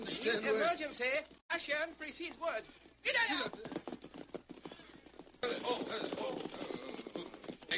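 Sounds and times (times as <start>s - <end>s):
speech: 0.0s - 3.9s, 5.4s - 6.7s
horses galloping on a trail: 2.2s - 7.7s.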